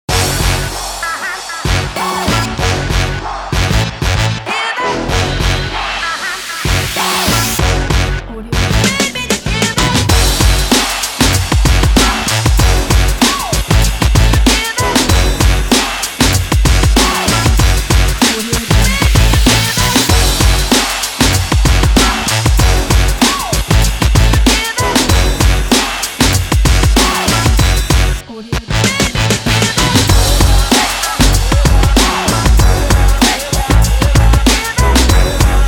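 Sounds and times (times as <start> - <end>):
background hip hop urban music: 0.0 - 35.6.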